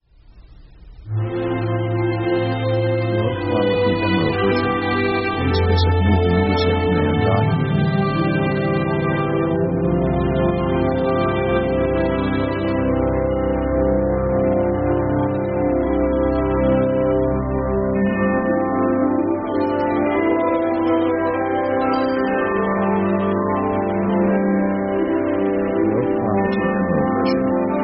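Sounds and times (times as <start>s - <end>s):
slow music: 1.0s - 27.8s.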